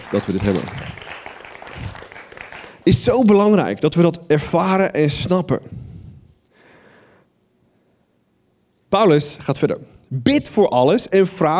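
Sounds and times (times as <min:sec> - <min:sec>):
applause for the team: 0:00.0 - 0:03.2
speech: 0:00.1 - 0:00.9, 0:02.9 - 0:05.8, 0:08.9 - 0:11.5.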